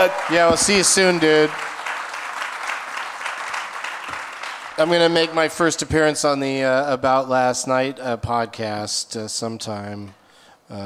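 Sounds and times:
speech: 0.0s - 1.8s, 4.8s - 10.8s
audience applause: 0.0s - 5.4s.

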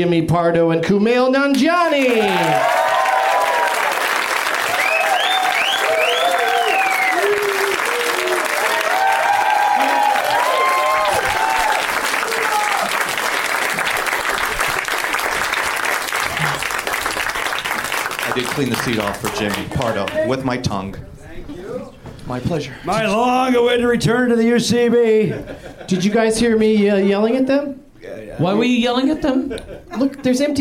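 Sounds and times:
speech: 0.0s - 2.8s, 18.6s - 21.6s, 22.3s - 27.8s, 28.4s - 30.5s
live comedy audience at the UCB theatre clapping: 1.8s - 20.4s
live comedy audience whooping and cheering: 1.9s - 18.1s.

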